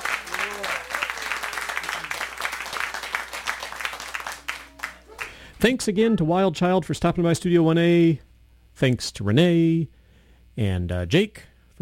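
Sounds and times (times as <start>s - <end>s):
faint cheers and voices: 0.0s - 2.1s
studio audience applause: 0.0s - 5.5s
speech: 5.6s - 10.0s, 10.6s - 11.8s.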